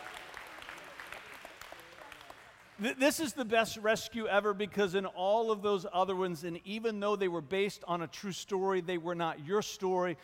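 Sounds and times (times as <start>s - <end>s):
audience applauding: 0.0s - 2.9s
speech: 2.8s - 10.2s.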